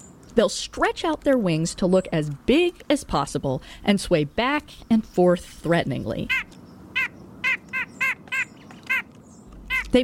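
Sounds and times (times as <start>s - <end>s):
speech: 0.4s - 6.6s
white-breasted nuthatch calling: 6.2s - 10.0s.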